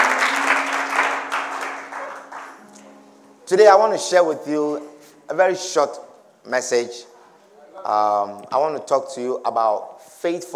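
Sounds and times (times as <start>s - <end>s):
audience clapping: 0.0s - 2.8s
speech: 3.5s - 7.1s, 7.8s - 10.5s.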